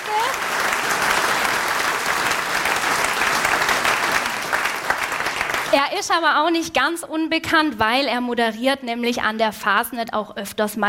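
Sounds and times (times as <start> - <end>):
audience applause: 0.0 - 5.8
speech: 5.7 - 10.8.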